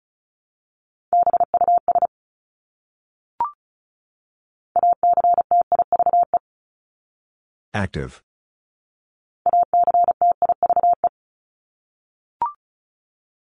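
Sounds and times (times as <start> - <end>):
fast Morse code beeps: 1.2 - 2.1, 4.8 - 6.4, 9.5 - 11.1
speech: 7.7 - 8.3.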